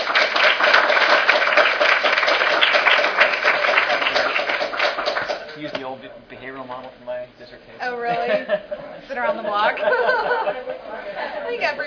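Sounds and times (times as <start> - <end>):
audience applause: 0.0 - 5.7
speech: 6.7 - 11.8
laughter: 8.0 - 11.8.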